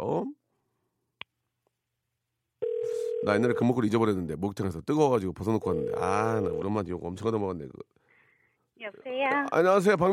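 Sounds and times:
telephone call connecting tone: 2.6s - 3.6s, 5.7s - 6.7s
speech: 3.2s - 8.0s, 8.8s - 10.1s.

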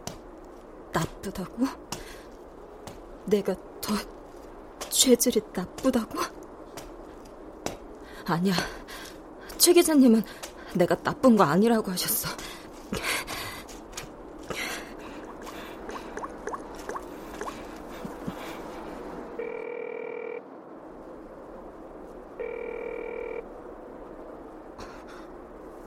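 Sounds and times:
speech: 1.0s - 2.0s, 3.3s - 4.2s, 4.9s - 6.4s, 8.3s - 8.8s, 9.6s - 13.2s
phone ring tone unanswered: 19.4s - 20.4s, 22.4s - 23.4s.

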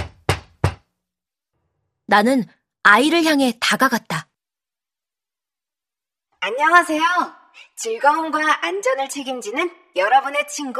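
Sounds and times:
fist pounding on glass door: 0.0s - 0.8s
speech: 2.1s - 4.3s, 6.4s - 10.7s.

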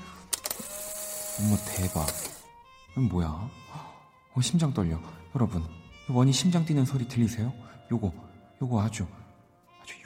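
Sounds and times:
instant camera motor whirring as the printed photo is pushed out: 0.3s - 2.5s
instant camera shutter clicks: 0.3s - 2.5s
speech: 1.4s - 2.4s, 3.0s - 9.2s, 9.8s - 10.0s.

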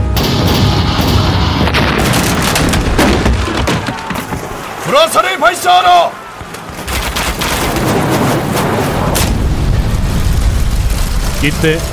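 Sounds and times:
cannon fire barrage: 0.2s - 4.0s, 6.6s - 11.8s
speech: 5.0s - 6.2s, 11.4s - 11.9s.

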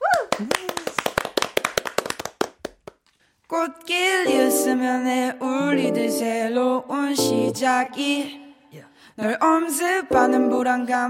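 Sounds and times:
voice whooping: 0.0s - 0.9s
audience clapping: 0.0s - 3.1s
speech: 0.4s - 0.6s, 3.6s - 11.0s.

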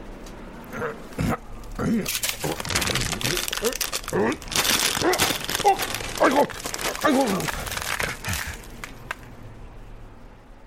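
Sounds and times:
speech: 0.8s - 7.7s
paper bag being torn open: 2.0s - 9.1s.

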